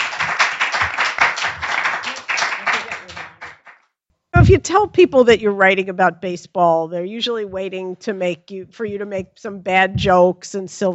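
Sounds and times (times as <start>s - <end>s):
audience applause welcoming a speaker in Baltimore: 0.0s - 3.8s
speech: 4.4s - 10.9s.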